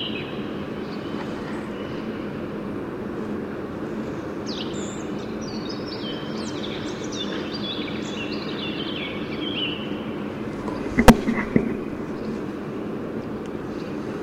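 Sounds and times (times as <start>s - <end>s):
Eurasian blackcap song: 0.0s - 14.1s
thuds: 10.6s - 12.2s.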